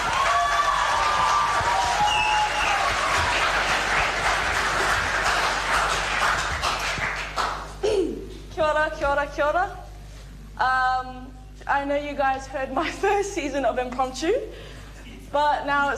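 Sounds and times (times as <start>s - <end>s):
audience applauding a student speaker at an impromptu speaking event: 0.0s - 7.8s
speech: 9.1s - 9.8s, 10.6s - 14.7s, 15.3s - 15.9s.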